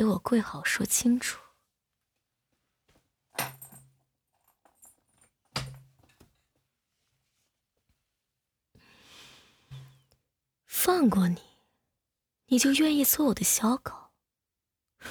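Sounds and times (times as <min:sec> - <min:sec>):
speech: 0:00.0 - 0:01.4, 0:10.8 - 0:11.5, 0:12.5 - 0:14.0
metal chain rattling as it is unlocked: 0:03.4 - 0:05.3.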